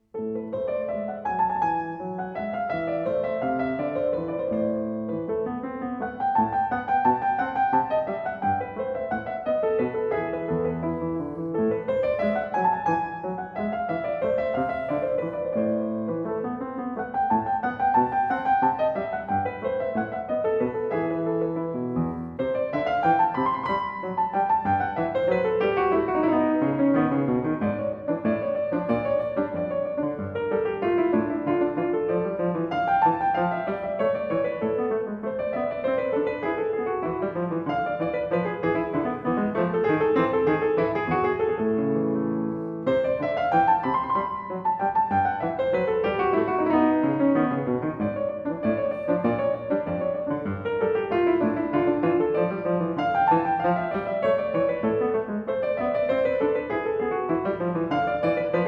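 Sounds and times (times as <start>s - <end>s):
classical variation in A minor: 0.0s - 58.6s.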